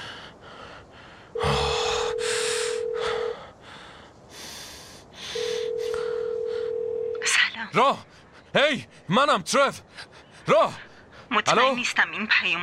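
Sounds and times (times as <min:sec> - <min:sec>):
breathy sounds: 0:00.0 - 0:07.0
landline ringback tone: 0:01.4 - 0:03.3, 0:05.4 - 0:07.2
speech: 0:07.8 - 0:12.6.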